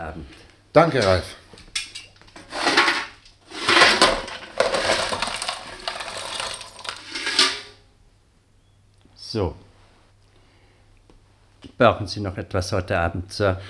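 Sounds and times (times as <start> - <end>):
speech: 0.0 - 1.4, 9.3 - 9.7, 11.8 - 13.6
coal lumps being tipped into a fireplace: 2.4 - 7.8.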